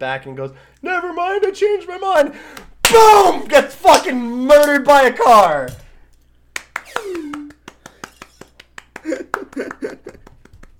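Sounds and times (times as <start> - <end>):
speech: 0.0 - 5.8, 9.0 - 10.3
excited voices: 2.8 - 5.6
hand clapping: 6.6 - 10.7
falling vocal whoop: 6.9 - 7.6
laughter: 9.0 - 10.7.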